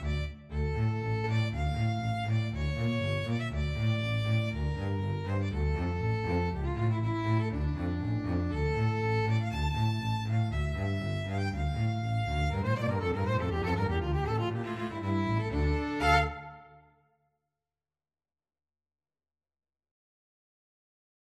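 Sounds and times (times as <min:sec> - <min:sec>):
bass: 0:00.0 - 0:16.7
violin: 0:00.0 - 0:16.9.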